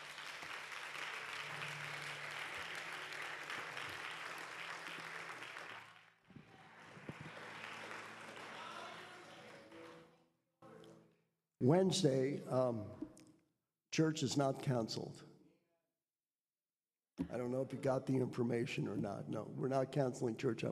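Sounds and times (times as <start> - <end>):
crowd clapping: 0.0 - 10.2
speech: 11.6 - 13.1, 14.0 - 15.3, 17.3 - 20.7.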